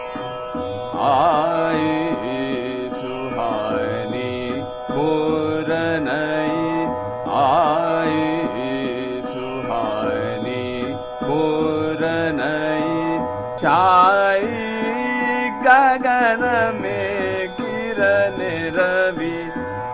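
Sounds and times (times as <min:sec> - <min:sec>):
chota khyal vocal in teental rhythm: 0:00.3 - 0:19.9.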